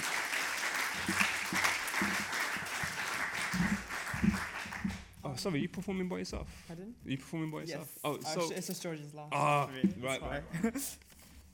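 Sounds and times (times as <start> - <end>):
audience applause: 0.0 - 5.1
speech: 5.4 - 11.0.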